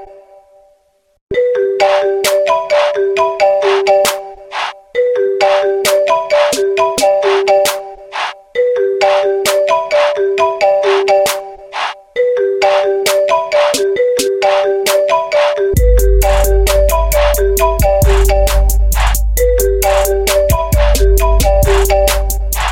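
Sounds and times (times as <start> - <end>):
iPhone ringtone remix: 1.3 - 8.0, 8.6 - 22.5.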